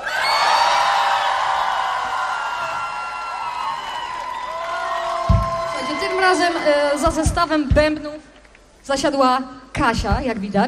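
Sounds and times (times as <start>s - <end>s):
concert audience shouting and cheering in Gdynia in fine weather: 0.0s - 7.6s
speech: 6.3s - 10.6s.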